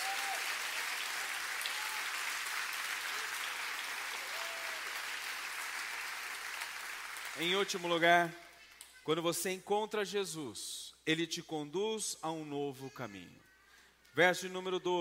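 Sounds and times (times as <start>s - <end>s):
audience applauding: 0.0s - 8.0s
speech: 7.4s - 8.4s, 9.0s - 13.5s, 14.2s - 14.9s.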